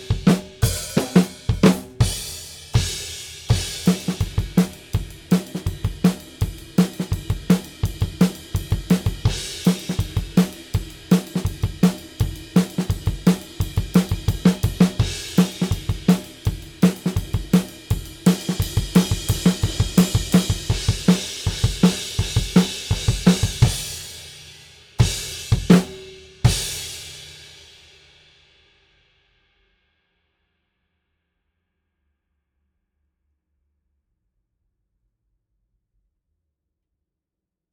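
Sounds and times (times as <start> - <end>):
drums: 0.0 - 29.8.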